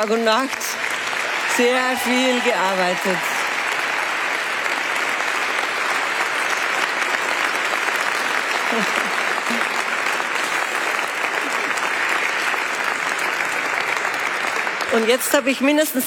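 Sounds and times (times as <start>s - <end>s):
speech: 0.0s - 0.8s, 1.6s - 3.3s, 8.7s - 9.0s, 14.9s - 16.0s
audience applause: 0.0s - 16.0s.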